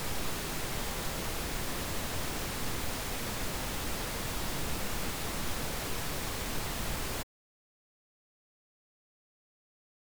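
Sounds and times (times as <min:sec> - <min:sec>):
mono pink noise: 0:00.0 - 0:07.2.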